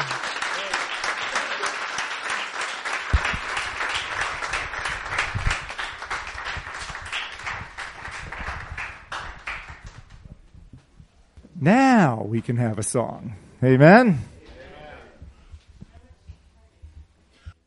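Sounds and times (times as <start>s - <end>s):
crowd clapping: 0.0s - 10.2s
speech: 11.6s - 14.3s.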